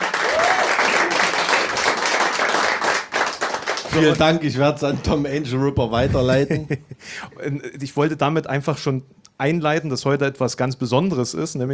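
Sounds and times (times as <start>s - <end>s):
live audience applause: 0.0s - 4.3s
speech: 3.9s - 11.7s.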